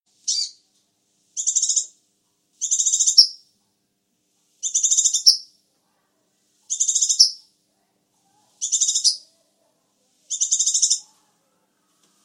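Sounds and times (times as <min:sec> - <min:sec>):
sunbird chirping song of high thin trilled bursts: 0:00.2 - 0:00.6, 0:01.4 - 0:01.9, 0:02.6 - 0:03.4, 0:04.6 - 0:05.5, 0:06.7 - 0:07.5, 0:08.6 - 0:09.2, 0:10.3 - 0:11.0.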